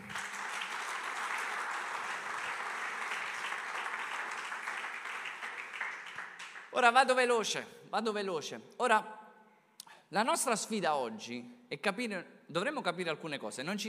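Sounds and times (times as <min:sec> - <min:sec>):
crowd applauding: 0:00.0 - 0:06.8
speech: 0:06.8 - 0:09.2, 0:10.1 - 0:13.8.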